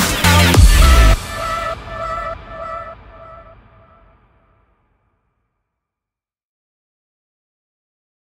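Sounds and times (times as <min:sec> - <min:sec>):
action background music: 0:00.0 - 0:04.1.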